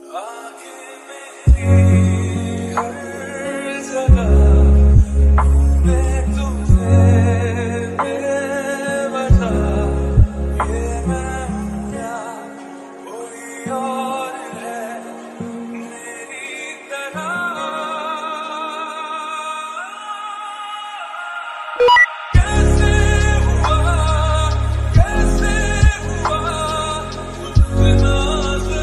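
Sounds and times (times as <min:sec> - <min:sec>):
Hindi love song ringtone: 0:00.0 - 0:20.2, 0:21.8 - 0:28.8.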